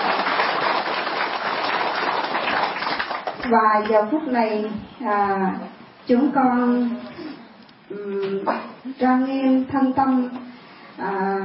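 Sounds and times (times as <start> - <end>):
crowd applause: 0.0 - 3.4
speech: 3.5 - 7.3, 8.0 - 10.4, 11.0 - 11.4.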